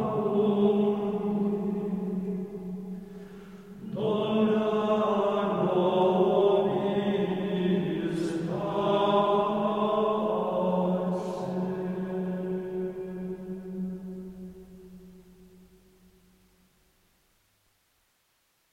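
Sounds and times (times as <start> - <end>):
choir of monks singing Gregorian chant: 0.0 - 3.0, 3.7 - 15.2.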